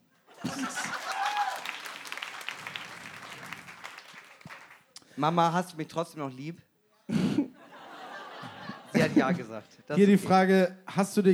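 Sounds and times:
laughter: 0.2s - 3.9s, 7.2s - 10.3s
audience applause: 0.4s - 5.0s
speech: 5.2s - 6.7s, 9.2s - 11.3s.

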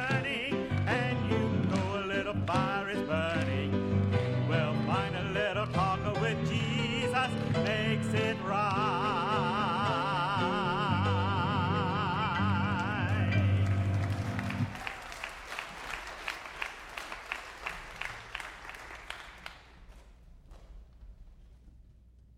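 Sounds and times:
scattered hand clapping in a recorded song: 0.0s - 4.2s, 13.1s - 20.7s
recorded song music: 0.0s - 14.8s.

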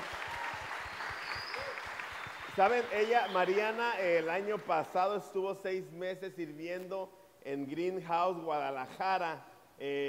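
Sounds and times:
audience applause: 0.0s - 4.7s
speech: 2.6s - 10.0s.

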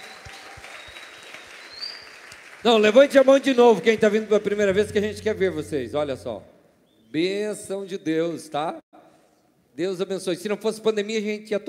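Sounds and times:
applause: 0.0s - 4.9s
speech: 2.6s - 6.5s, 7.1s - 8.9s, 9.8s - 11.6s.

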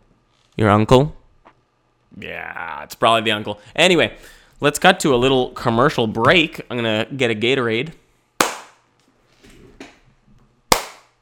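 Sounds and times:
speech: 0.6s - 1.2s, 2.1s - 8.0s
hand claps: 8.4s - 8.8s, 10.7s - 11.1s.

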